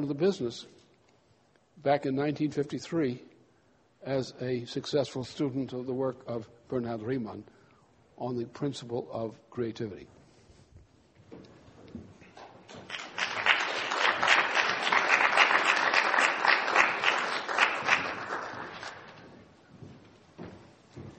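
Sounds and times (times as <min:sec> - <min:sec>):
speech: 0:00.0 - 0:00.8, 0:01.8 - 0:03.3, 0:04.0 - 0:07.6, 0:08.2 - 0:10.2
applause: 0:12.7 - 0:19.3.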